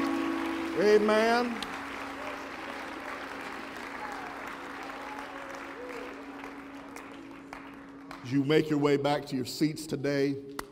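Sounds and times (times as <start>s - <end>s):
audience applause: 0.0s - 8.6s
speech: 0.8s - 1.7s, 8.3s - 10.6s.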